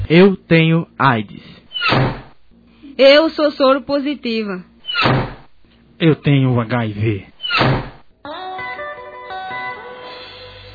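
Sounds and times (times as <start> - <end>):
speech: 0.1 - 2.2, 3.0 - 5.3, 6.0 - 7.8
heavy door slamming shut: 1.8 - 2.3, 4.9 - 5.5, 7.4 - 8.0.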